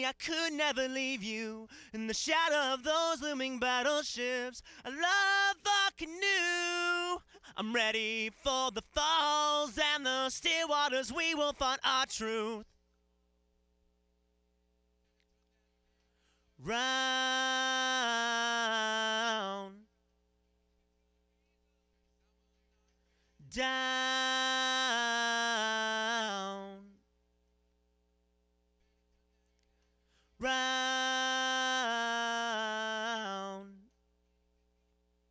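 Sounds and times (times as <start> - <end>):
person singing: 0.0 - 12.6, 16.6 - 19.8, 23.4 - 26.9, 30.4 - 33.8.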